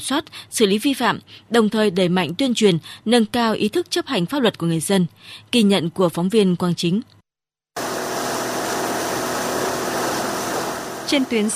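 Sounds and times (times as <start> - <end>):
speech: 0.0 - 7.2, 11.1 - 11.5
police waterway patrol boat engines on the Cau River and Nui Coc Lake: 7.8 - 11.5.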